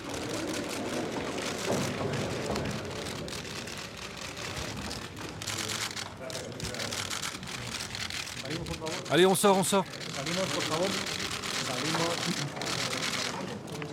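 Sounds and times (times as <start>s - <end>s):
camera shutters crackling: 0.0s - 13.8s
speech: 9.1s - 11.2s.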